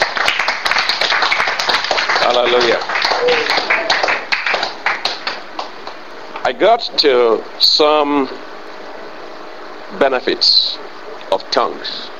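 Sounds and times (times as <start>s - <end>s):
audience clapping: 0.0s - 6.1s
speech: 2.3s - 3.8s, 6.5s - 8.5s, 9.9s - 10.6s, 11.4s - 12.1s.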